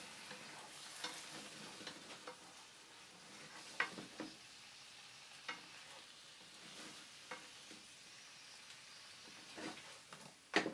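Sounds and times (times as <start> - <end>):
eggplant simmering in tomato sauce: 0.0 - 10.6
stirring scrapes and taps: 0.2 - 4.4, 5.5 - 7.8, 9.3 - 10.3.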